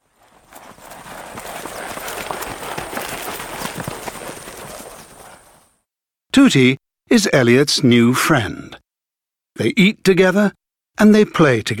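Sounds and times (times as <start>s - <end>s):
hoofbeats of frightened zebras running away: 0.0s - 5.8s
speech: 6.4s - 8.8s, 9.6s - 11.7s.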